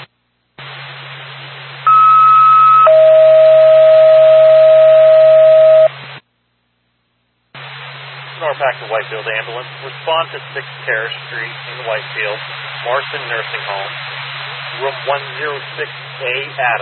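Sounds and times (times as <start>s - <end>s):
dispatch radio alert tone: 1.9s - 5.9s
speech: 8.9s - 14.2s, 14.8s - 16.7s.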